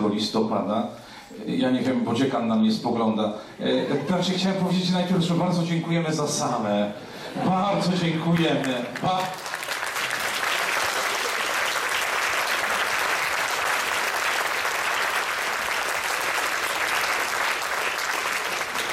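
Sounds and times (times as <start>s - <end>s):
speech: 0.2s - 9.5s
audience applause: 8.4s - 18.9s.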